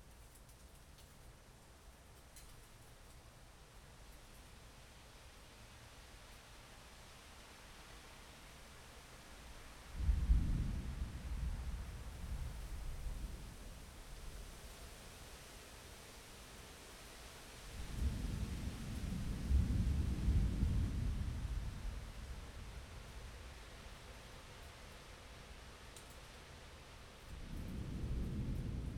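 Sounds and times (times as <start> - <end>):
thunderstorm: 10.0 - 14.3, 17.8 - 23.6, 27.3 - 28.9.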